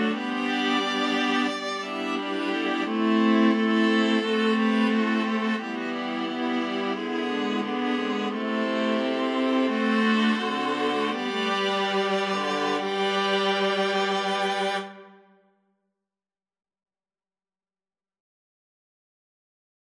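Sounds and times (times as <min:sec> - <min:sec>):
viola ensemble: 0:00.0 - 0:15.2.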